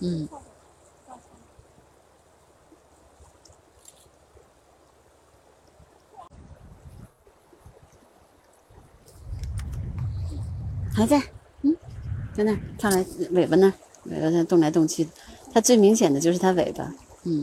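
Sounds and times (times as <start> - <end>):
speech: 0.0 - 0.5, 11.0 - 11.8, 12.4 - 17.4
river water flowing: 0.0 - 17.4
wind buffeting microphone: 5.8 - 17.3.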